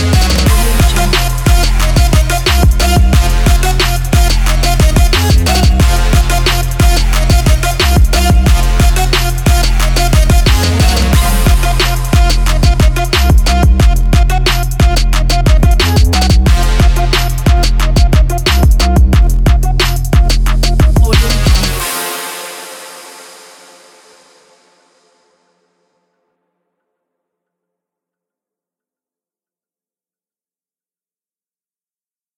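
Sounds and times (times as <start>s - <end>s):
trap music: 0.0s - 24.9s.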